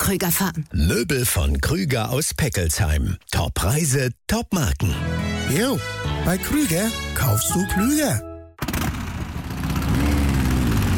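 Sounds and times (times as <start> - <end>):
speech: 0.1 - 8.3
vintage motorcycle engine running: 8.6 - 10.9.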